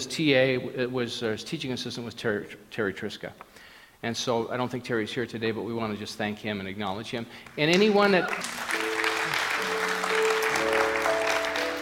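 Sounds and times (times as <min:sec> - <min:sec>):
speech: 0:00.0 - 0:08.7
crowd clapping: 0:07.4 - 0:11.8.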